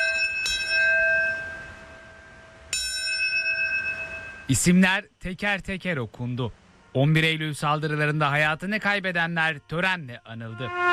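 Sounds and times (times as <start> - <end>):
bells ringing at a memorial ceremony for attack victims: 0.0 - 4.7
speech: 4.5 - 10.9.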